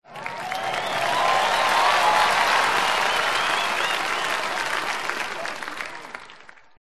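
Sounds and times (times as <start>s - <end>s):
crowd cheering: 0.0s - 6.7s.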